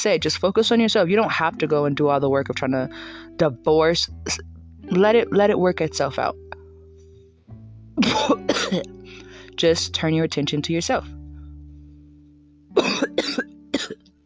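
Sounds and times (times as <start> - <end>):
speech: 0.0 - 6.5, 8.0 - 9.0, 9.6 - 11.2
coughing: 8.0 - 9.3, 12.8 - 14.0.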